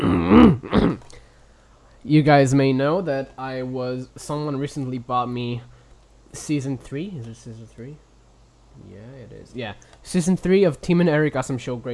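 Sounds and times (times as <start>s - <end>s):
person burping: 0.0s - 1.2s
speech: 2.0s - 5.7s, 6.3s - 8.0s, 8.8s - 11.9s.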